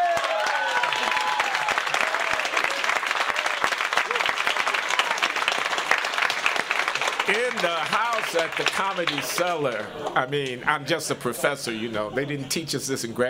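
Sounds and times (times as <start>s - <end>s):
live comedy club audience applause and whoops at the Comedy Cellar: 0.0s - 9.8s
speech: 8.3s - 13.2s.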